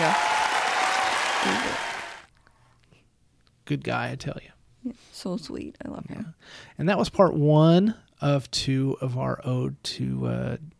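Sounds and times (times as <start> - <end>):
applause: 0.0 - 2.3
speech: 3.7 - 10.7.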